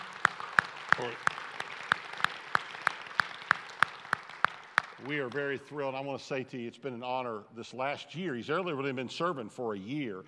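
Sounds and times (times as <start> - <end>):
audience applause: 0.0 - 5.6
speech: 1.0 - 1.4, 5.0 - 10.2.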